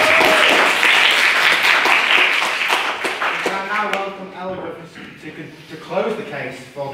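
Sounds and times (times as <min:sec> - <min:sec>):
audience applause: 0:00.0 - 0:04.0
speech: 0:06.3 - 0:06.9.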